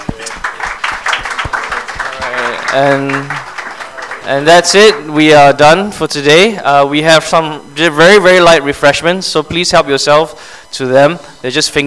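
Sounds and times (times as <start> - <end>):
audience clapping: 0.0 - 5.1
speech: 2.7 - 3.5, 4.2 - 11.8.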